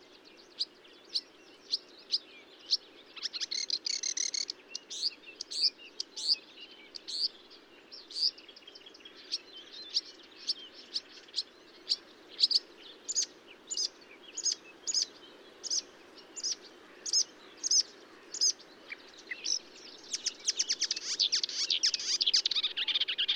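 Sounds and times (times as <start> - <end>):
marsh warbler singing at Bonnevaux in early morning: 0.1 - 23.3.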